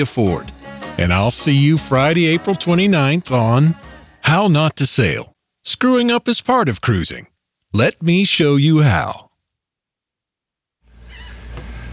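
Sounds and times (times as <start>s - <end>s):
speech: 0.0s - 9.3s
seagulls calling: 11.0s - 11.7s.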